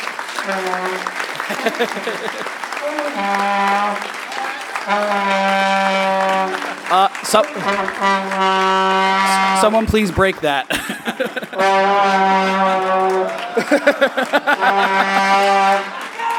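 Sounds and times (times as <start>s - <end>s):
crowd cheering and whooping: 0.0s - 8.1s, 12.4s - 16.3s
audience applause: 0.0s - 16.3s
speech: 0.4s - 4.2s, 4.8s - 16.0s
laughter: 0.6s - 4.0s, 6.6s - 8.3s, 9.2s - 16.3s.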